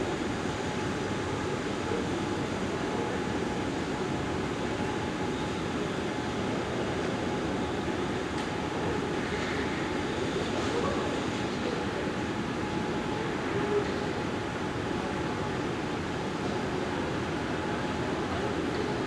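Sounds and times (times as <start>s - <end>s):
Istanbul Airport ambience: 0.0s - 19.0s.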